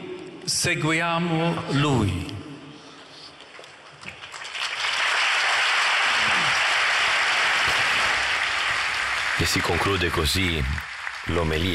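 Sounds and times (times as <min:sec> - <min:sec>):
speech: 0:00.5 - 0:02.4, 0:09.4 - 0:11.7
crowd applauding in a public square: 0:04.1 - 0:11.7.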